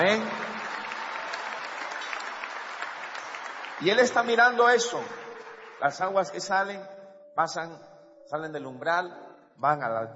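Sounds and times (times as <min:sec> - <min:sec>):
audience applause: 0:00.0 - 0:06.2
speech: 0:03.8 - 0:05.2, 0:05.8 - 0:10.1.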